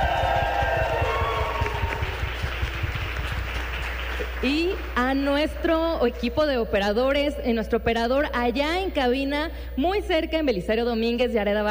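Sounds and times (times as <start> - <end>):
applause: 0.0 - 6.2
speech: 4.4 - 11.6.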